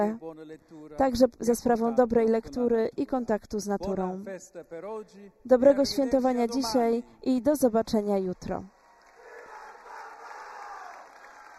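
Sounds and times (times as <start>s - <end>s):
speech: 0.0s - 8.8s
crowd shouting long live the pope at Castel Gandolfo: 9.1s - 11.5s.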